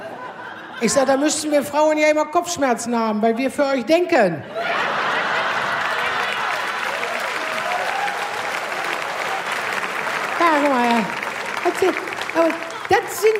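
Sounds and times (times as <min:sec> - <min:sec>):
laughter: 0:00.3 - 0:07.6
speech: 0:00.8 - 0:04.9, 0:11.8 - 0:13.3
audience applause: 0:04.8 - 0:13.3.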